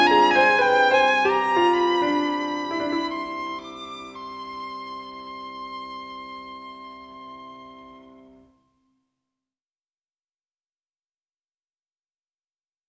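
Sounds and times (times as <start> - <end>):
prelude in C minor: 0.0 - 8.5.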